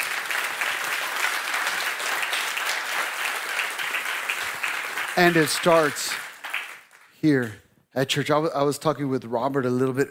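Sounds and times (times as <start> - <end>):
audience hand clapping: 0.0 - 7.6
speech: 5.2 - 6.2, 7.2 - 10.1.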